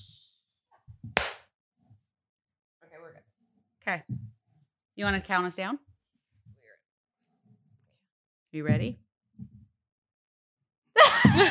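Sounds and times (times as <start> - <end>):
single hand clap: 1.2 - 1.5
speech: 3.9 - 4.3, 5.0 - 5.9, 8.5 - 9.0
laughter: 11.0 - 11.4.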